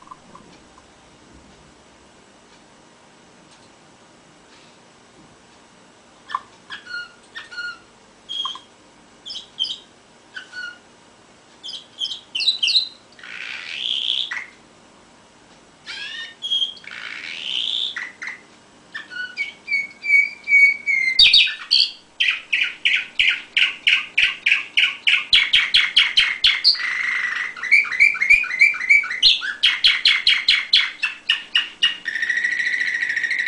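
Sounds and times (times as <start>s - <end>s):
canary song: 6.2s - 14.6s, 15.8s - 33.4s.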